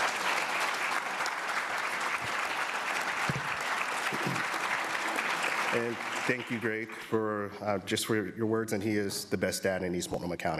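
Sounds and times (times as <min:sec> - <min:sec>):
audience applause: 0:00.0 - 0:07.3
speech: 0:05.8 - 0:10.5.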